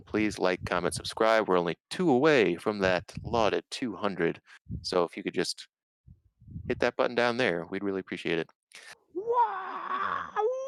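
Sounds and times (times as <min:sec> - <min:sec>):
speech: 0:00.0 - 0:05.7, 0:06.7 - 0:09.7
celebratory scream: 0:09.2 - 0:10.5.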